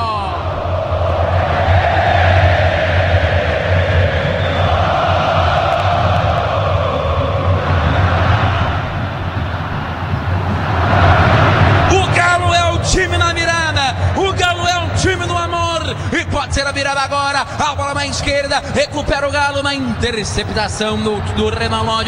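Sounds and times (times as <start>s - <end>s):
low rumble: 0.0s - 16.1s
stadium crowd roaring after a goal: 0.0s - 22.0s
speech: 19.5s - 22.0s.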